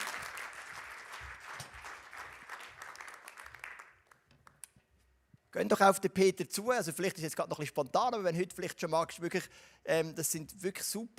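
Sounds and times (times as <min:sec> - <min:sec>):
audience applause: 0:00.0 - 0:04.0
speech: 0:05.5 - 0:11.1.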